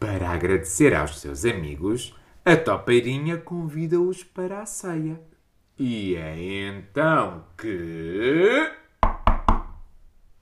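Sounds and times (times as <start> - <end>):
speech: 0.3 - 8.8
knocking on a door: 9.0 - 9.9.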